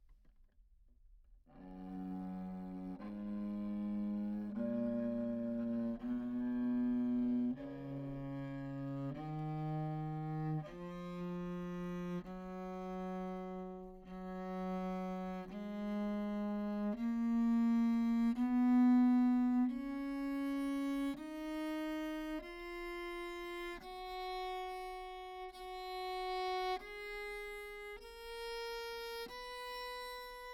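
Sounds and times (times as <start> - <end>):
tenor viol recorded anechoic: 1.5 - 30.5.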